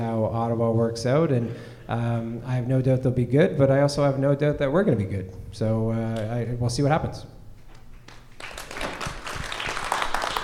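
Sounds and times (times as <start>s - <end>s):
speech: 0.0s - 7.4s
audience applause: 8.1s - 10.4s.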